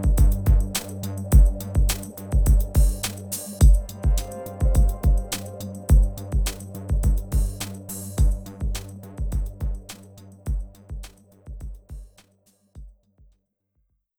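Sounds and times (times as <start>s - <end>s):
battle victory music: 0.0s - 9.9s.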